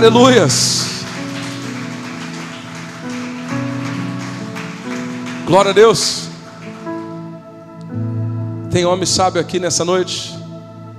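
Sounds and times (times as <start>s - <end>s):
speech: 0.0s - 0.9s, 5.5s - 6.3s, 8.7s - 10.4s
audience applauding loudly: 0.0s - 7.3s.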